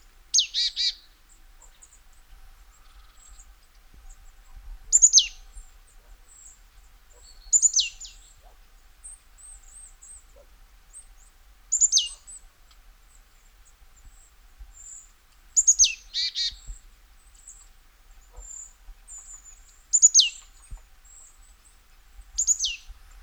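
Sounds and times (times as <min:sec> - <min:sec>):
marsh tit Poecile palustris buzzy scolding calls: 0:00.3 - 0:01.0, 0:04.9 - 0:05.4, 0:11.7 - 0:12.3, 0:15.6 - 0:16.7, 0:18.3 - 0:20.5, 0:22.4 - 0:22.9.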